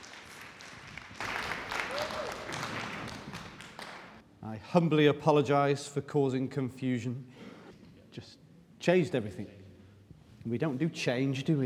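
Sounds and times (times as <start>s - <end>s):
audience cheering and applause: 0.0s - 4.2s
speech: 4.7s - 7.4s, 8.2s - 9.6s, 10.4s - 11.6s.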